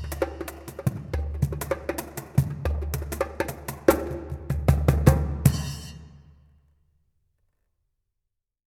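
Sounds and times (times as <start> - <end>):
percussion solo: 0.0 - 6.4.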